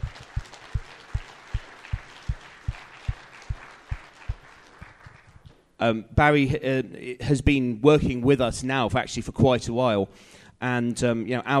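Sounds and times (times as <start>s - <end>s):
audience applause: 0.0s - 5.4s
speech: 5.8s - 11.5s.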